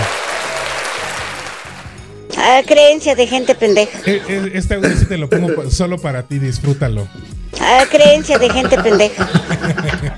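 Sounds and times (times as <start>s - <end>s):
applause sound effect: 0.0s - 2.1s
speech: 2.5s - 10.1s
laughter: 7.7s - 10.1s.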